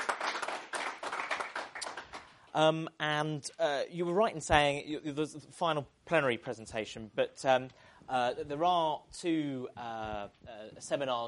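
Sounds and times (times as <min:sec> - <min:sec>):
round of applause: 0:00.0 - 0:02.4
speech: 0:02.6 - 0:11.2.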